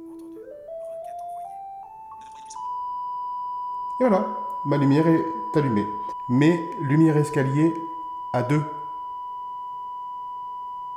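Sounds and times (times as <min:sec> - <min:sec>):
smart home light-on confirmation chime: 0:00.3 - 0:08.9
speech: 0:04.0 - 0:08.8.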